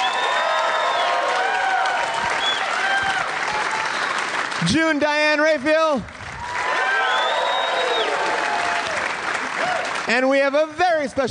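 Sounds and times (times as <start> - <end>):
high whoops and whistles: 0.0 - 3.2, 6.9 - 8.2
live audience applause at the Bumbershoot festival: 0.0 - 10.8
speech: 4.6 - 6.2, 10.1 - 11.3.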